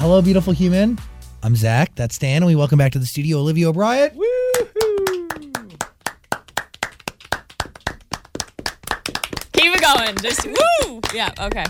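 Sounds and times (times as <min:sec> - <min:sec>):
speech: 0:00.1 - 0:04.2, 0:09.9 - 0:11.6
applause, hands clapping in studio: 0:04.5 - 0:11.6.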